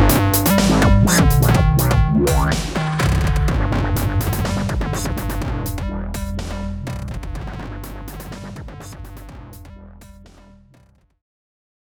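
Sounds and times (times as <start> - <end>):
remixed music: 0.0 - 10.9.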